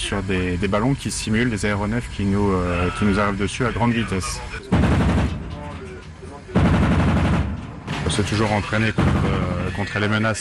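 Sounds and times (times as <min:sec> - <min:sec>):
speech: 0:00.0 - 0:05.0, 0:08.2 - 0:10.3
rear machine gun firing: 0:04.6 - 0:10.2
100 mm and 20 mm naval cannons firing: 0:04.7 - 0:05.9, 0:06.5 - 0:10.1.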